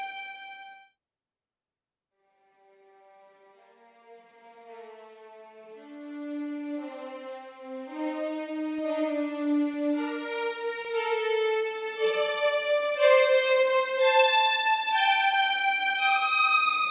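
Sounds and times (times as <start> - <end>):
first violins playing legato: 8.5 - 16.8.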